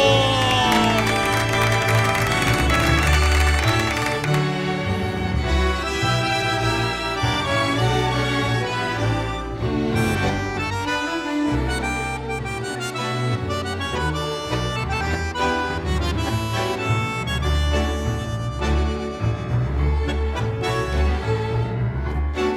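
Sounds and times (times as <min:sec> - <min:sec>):
audience clapping and cheering: 0:00.0 - 0:05.0
loud sustained instrumental music: 0:00.0 - 0:22.5.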